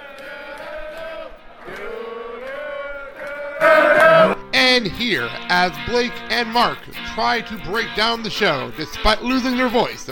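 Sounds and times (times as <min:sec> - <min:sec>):
concert crowd cheering wildly: 0:00.0 - 0:04.4
speech: 0:04.8 - 0:10.1.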